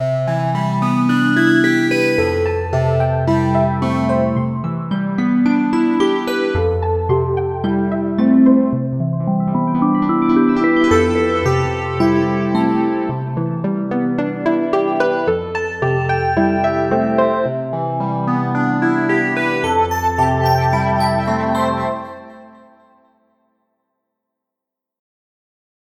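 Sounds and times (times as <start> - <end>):
keyboard playing: 0.0 - 23.0.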